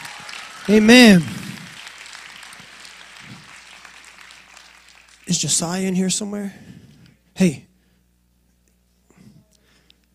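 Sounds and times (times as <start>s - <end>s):
audience hand clapping for seniors: 0.0s - 6.4s
speech: 0.7s - 1.4s, 5.3s - 6.8s, 7.4s - 7.7s.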